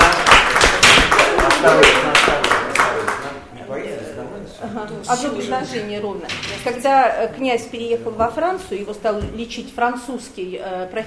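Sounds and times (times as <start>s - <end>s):
audience applause welcoming performer: 0.0s - 3.4s
speech: 1.6s - 2.0s, 4.6s - 11.0s.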